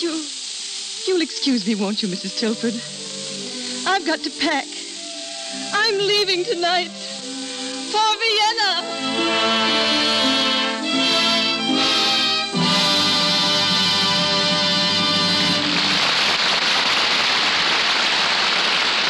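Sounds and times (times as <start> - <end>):
music: 0.0 - 16.4
speech: 1.1 - 3.0, 3.9 - 4.8, 5.5 - 7.0, 7.9 - 9.7
audience applause: 12.8 - 19.0.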